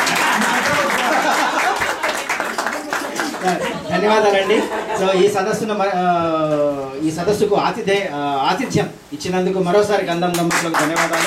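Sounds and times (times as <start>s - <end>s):
conference audience clapping at the close of a gathering: 0.0s - 3.8s, 10.3s - 11.2s
laughter: 0.0s - 5.3s
speech: 3.4s - 11.2s.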